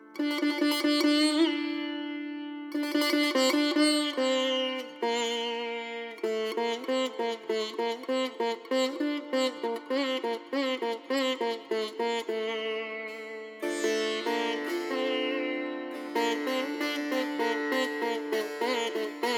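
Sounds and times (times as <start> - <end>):
sitar solo: 0.0 - 19.3.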